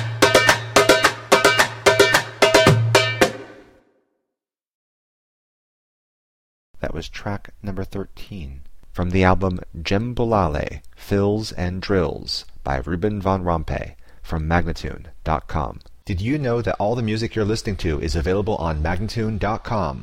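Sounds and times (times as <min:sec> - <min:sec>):
djembe: 0:00.0 - 0:03.6
person speaking: 0:06.8 - 0:20.0.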